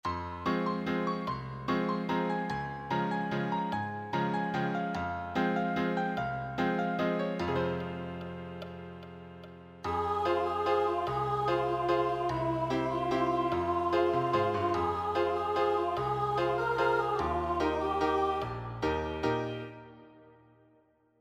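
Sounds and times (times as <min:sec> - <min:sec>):
main accompaniment music: 0:00.1 - 0:20.4.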